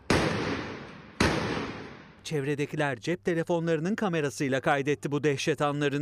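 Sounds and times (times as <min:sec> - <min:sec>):
shotgun fire: 0:00.0 - 0:02.2
speech: 0:02.3 - 0:05.9.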